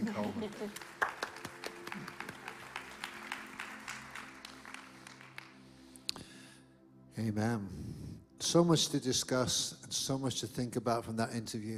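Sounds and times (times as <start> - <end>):
audience applause: 0.0 - 5.8
speech: 0.2 - 1.0, 7.2 - 11.7.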